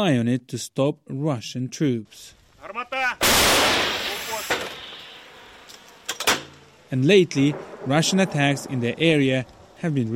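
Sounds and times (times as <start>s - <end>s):
speech: 0.0s - 2.9s, 6.9s - 10.1s
old American M101 howitzer fired by Ukrainian forces: 3.2s - 5.4s, 7.4s - 8.5s.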